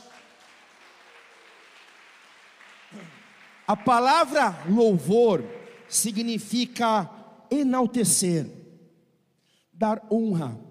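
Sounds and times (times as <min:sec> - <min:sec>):
audience applause: 0:00.0 - 0:06.6
speech: 0:02.9 - 0:08.6, 0:09.8 - 0:10.6.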